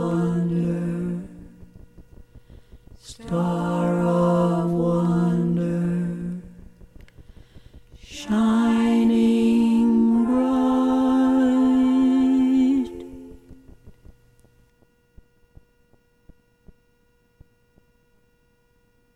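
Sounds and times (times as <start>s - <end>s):
choir harmonies singing a carol: 0.0s - 1.6s, 3.0s - 6.6s, 8.0s - 13.6s
alto voice singing a carol: 3.0s - 6.7s, 8.0s - 13.6s.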